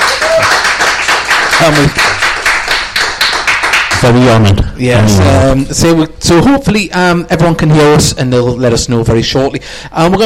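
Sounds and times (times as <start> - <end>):
round of applause from a group: 0.0 - 4.5
speech: 1.6 - 2.1, 4.0 - 10.2.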